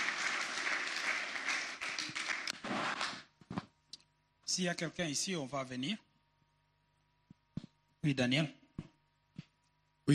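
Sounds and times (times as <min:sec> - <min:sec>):
church congregation clapping in applause: 0:00.0 - 0:03.3
speech: 0:04.6 - 0:06.1, 0:08.0 - 0:08.6.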